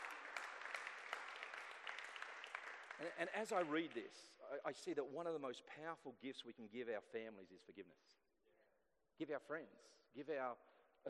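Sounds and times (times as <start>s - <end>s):
audience hand clapping: 0.0s - 4.3s
speech: 3.0s - 8.2s, 9.2s - 11.0s.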